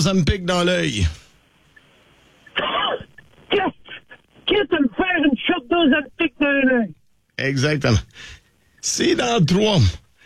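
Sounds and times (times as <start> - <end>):
speech: 0.0 - 1.2, 4.5 - 10.0
throat clearing: 2.5 - 3.1
person coughing and choking: 2.6 - 3.1.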